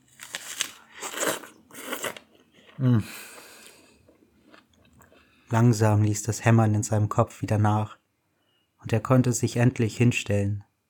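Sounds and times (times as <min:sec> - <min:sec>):
biting juicy fruit: 0:00.5 - 0:05.3
speech: 0:02.8 - 0:03.3, 0:05.5 - 0:08.0, 0:08.9 - 0:10.7.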